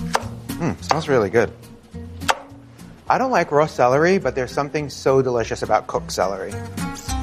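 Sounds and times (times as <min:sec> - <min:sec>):
knife cutting cooked celery ribs into sticks on a board: 0:00.1 - 0:01.1
speech: 0:00.8 - 0:01.7, 0:03.1 - 0:07.1.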